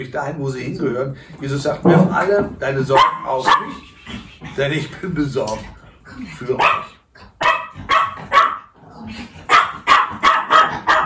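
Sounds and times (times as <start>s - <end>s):
speech: 0.0s - 6.9s
dog barking: 3.0s - 3.8s, 6.6s - 8.8s, 9.5s - 11.0s.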